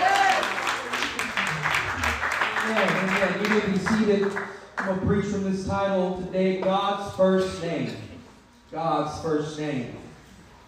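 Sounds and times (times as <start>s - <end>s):
audience clapping hands: 0.0s - 5.0s
speech: 2.7s - 8.0s, 8.7s - 10.0s.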